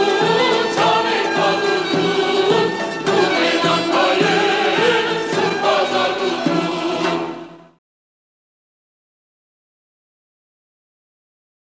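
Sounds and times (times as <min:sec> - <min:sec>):
choir singing: 0:00.0 - 0:07.8.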